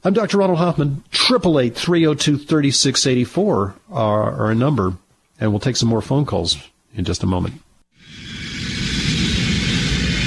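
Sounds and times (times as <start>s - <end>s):
speech: 0.0s - 8.2s
broadband airplane engine rumble in an airplane cabin: 8.0s - 10.2s.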